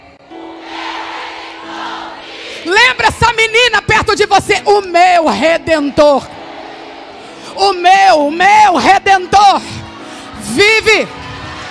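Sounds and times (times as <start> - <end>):
audience shouting: 0.3 - 2.7, 5.4 - 7.4
speech: 2.6 - 6.4, 7.6 - 9.8, 10.4 - 11.2.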